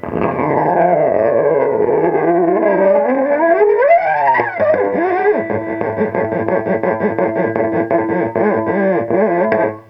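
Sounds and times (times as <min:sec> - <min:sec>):
guitar: 0:00.0 - 0:09.8.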